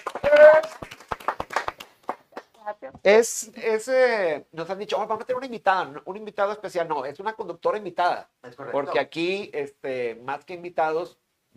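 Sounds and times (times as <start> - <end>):
clapping applause for guest: 0.0 - 2.6
speech: 3.0 - 11.5.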